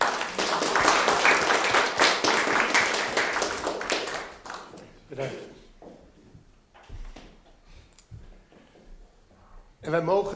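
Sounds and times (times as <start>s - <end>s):
crowd applause: 0.0s - 4.9s
speech: 5.2s - 5.5s, 9.9s - 10.3s.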